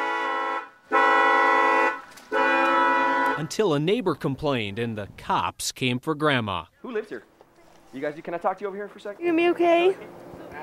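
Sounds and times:
six automotive horns on dollies with car batteries honking: 0.0 - 4.0
speech: 3.4 - 7.3, 7.9 - 10.2.

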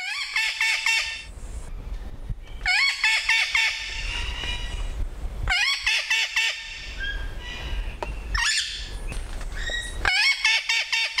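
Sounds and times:
captive Puerto Rican parrots squawking: 0.0 - 1.2, 2.6 - 4.8, 5.5 - 8.9, 9.6 - 11.1.

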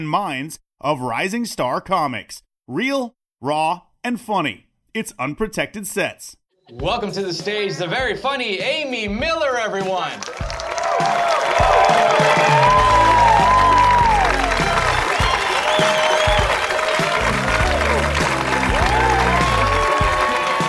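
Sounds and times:
speech: 0.0 - 13.0
loud upbeat music: 6.7 - 20.6
large audience applauding and cheering for comedian: 10.1 - 20.6.

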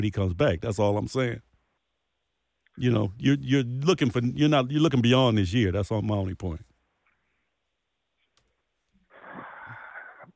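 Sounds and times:
speech: 0.0 - 1.5, 2.8 - 6.7
deep breath: 9.1 - 10.3.

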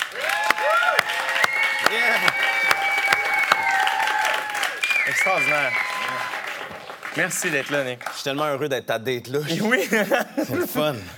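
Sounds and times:
crowd applauding: 0.0 - 8.2
whoops and whistled cheers: 0.1 - 6.6
speech: 5.2 - 6.3, 7.2 - 11.1.

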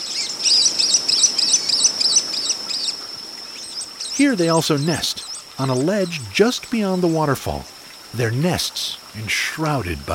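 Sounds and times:
cave-nesting swift calls: 0.0 - 6.5
steady hiss of noise: 0.0 - 10.1
speech: 4.2 - 10.1.

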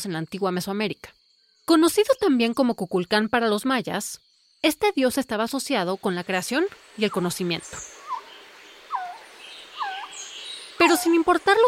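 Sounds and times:
speech: 0.0 - 8.0, 10.8 - 11.6
Resplendent Quetzal calling: 7.0 - 11.6.

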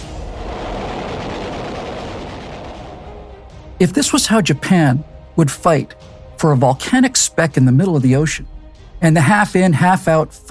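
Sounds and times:
warplane roar in a low-level attack: 0.0 - 5.4
speech: 3.8 - 10.5.

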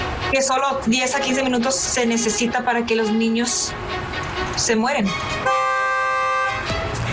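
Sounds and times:
speech: 0.3 - 5.6
car alarm honking: 5.4 - 6.7.

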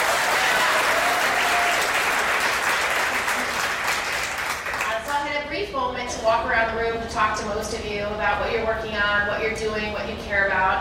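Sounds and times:
crowd clapping: 0.0 - 5.2
speech: 6.3 - 10.8.

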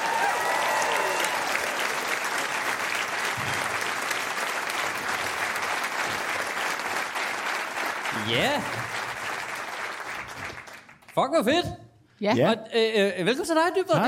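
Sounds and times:
audience applause at a stand-up comedy show: 0.0 - 11.2
speech: 8.2 - 9.0, 11.2 - 14.0.

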